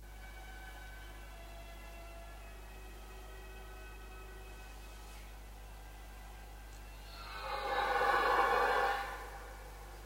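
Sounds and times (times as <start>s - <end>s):
dominant red deer stag bellowing a warning on the rutting ground: 7.1s - 9.7s.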